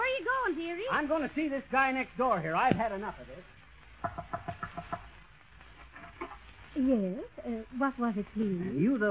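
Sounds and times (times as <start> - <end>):
speech: 0.8 - 4.3, 6.8 - 9.0
chickens clucking: 3.9 - 6.5.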